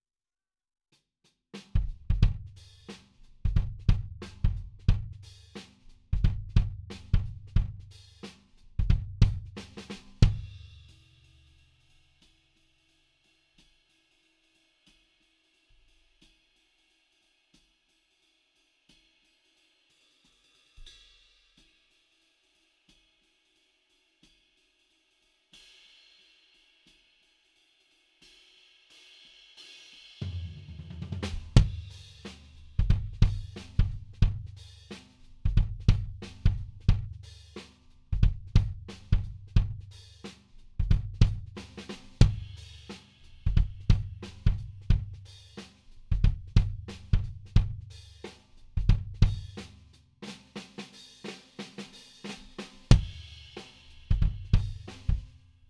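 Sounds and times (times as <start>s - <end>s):
kick drum: 1.8s - 2.6s, 3.5s - 5.2s, 6.2s - 7.9s, 8.8s - 9.6s, 31.3s - 31.9s, 32.8s - 34.5s, 35.5s - 37.2s, 38.2s - 39.8s, 40.8s - 41.6s, 42.2s - 42.5s, 43.5s - 45.2s, 46.1s - 47.9s, 48.8s - 49.6s, 52.9s - 53.2s, 54.1s - 55.3s.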